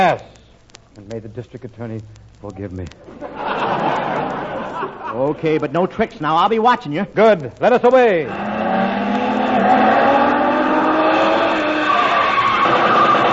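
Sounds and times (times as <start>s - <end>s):
speech: 0.0s - 0.3s, 1.0s - 8.5s
laughter: 3.0s - 5.6s
car speeding: 8.3s - 13.2s.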